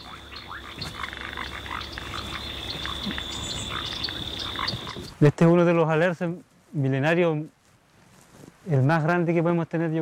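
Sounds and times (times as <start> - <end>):
insect-like trill: 0.0 - 5.1
frogs and toads croaking in wetland: 0.0 - 5.2
speech: 5.2 - 7.6, 8.7 - 10.0.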